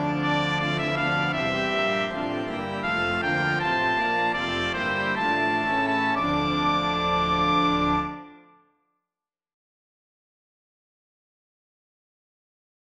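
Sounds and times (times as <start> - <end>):
trumpet playing a Christmas carol descant: 0.0 - 8.5.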